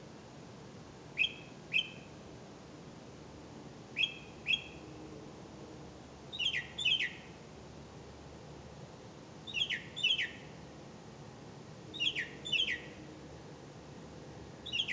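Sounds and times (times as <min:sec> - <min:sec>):
background hiss: 0:00.0 - 0:14.9
bird chirps: 0:01.2 - 0:02.1, 0:04.0 - 0:04.8, 0:06.3 - 0:07.3, 0:09.5 - 0:10.5, 0:11.9 - 0:13.0, 0:14.6 - 0:14.9.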